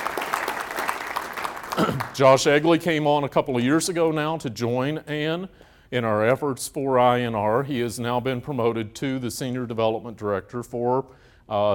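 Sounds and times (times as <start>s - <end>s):
crowd applause: 0.0s - 2.6s
speech: 1.8s - 11.7s.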